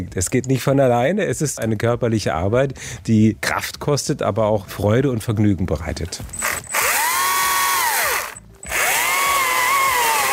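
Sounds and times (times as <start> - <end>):
speech: 0.0 - 6.5
saw cutting pieces from a tree trunk: 6.4 - 10.3.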